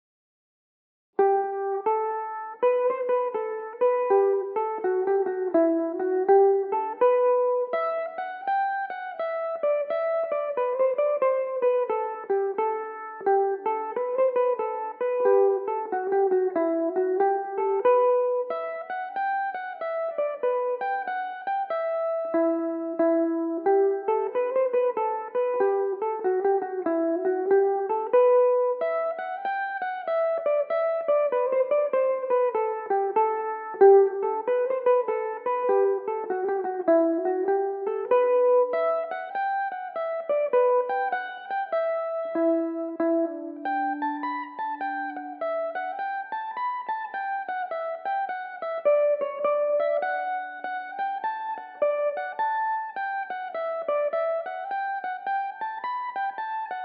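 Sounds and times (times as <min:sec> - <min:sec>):
slow Irish mandolin tune in E minor: 0:01.2 - 0:56.8.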